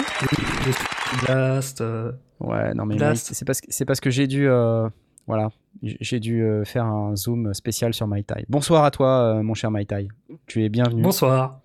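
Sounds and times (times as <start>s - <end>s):
brisk clapping: 0.0s - 1.3s
speech: 0.2s - 11.6s.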